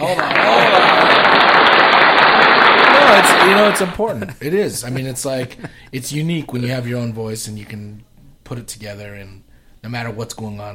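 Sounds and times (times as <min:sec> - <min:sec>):
applause: 0:00.0 - 0:04.0
laughter: 0:00.0 - 0:05.9
speech: 0:03.5 - 0:10.7.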